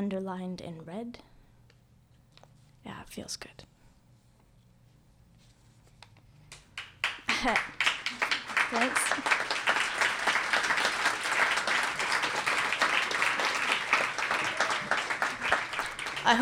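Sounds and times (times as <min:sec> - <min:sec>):
speech: 0:00.0 - 0:01.3, 0:02.8 - 0:03.8, 0:07.4 - 0:09.5
crowd audience clapping: 0:06.5 - 0:16.3
laughter: 0:07.3 - 0:16.3.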